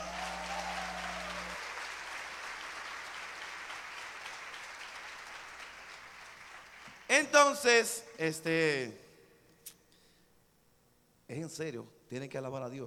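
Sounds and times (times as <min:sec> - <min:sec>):
low hum: 0:00.0 - 0:02.0
audience applause: 0:00.0 - 0:07.1
speech: 0:07.2 - 0:09.0, 0:11.4 - 0:12.8.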